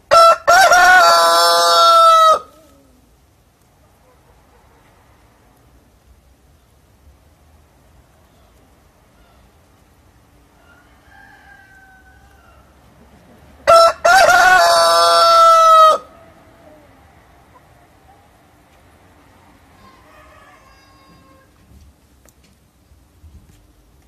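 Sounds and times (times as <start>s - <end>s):
rooster crowing: 0.1s - 2.6s, 10.5s - 12.9s, 13.6s - 16.9s, 19.7s - 21.7s.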